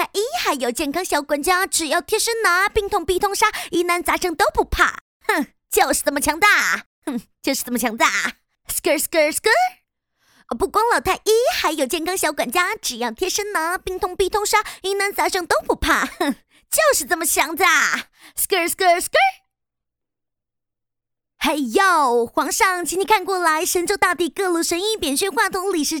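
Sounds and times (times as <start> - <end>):
woman rapping a cover in Chinese: 0.0 - 8.1, 10.5 - 16.2, 16.8 - 17.8, 18.4 - 19.4, 21.4 - 25.9.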